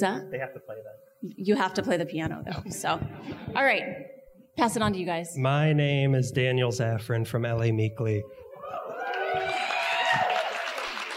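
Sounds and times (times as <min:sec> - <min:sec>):
speech: 0:00.0 - 0:09.5
cheering voices: 0:08.4 - 0:11.1
audience applause: 0:08.7 - 0:11.1.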